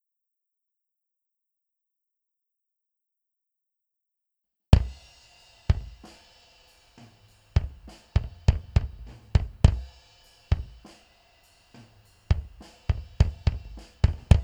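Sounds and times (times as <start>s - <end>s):
bass drum: 4.8s - 5.1s, 5.7s - 6.2s, 7.5s - 11.0s, 11.8s - 14.4s.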